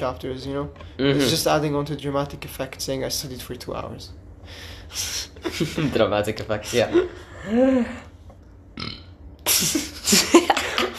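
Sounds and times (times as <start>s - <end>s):
speech: 0.0s - 8.1s, 9.6s - 9.8s
burp: 8.8s - 9.2s.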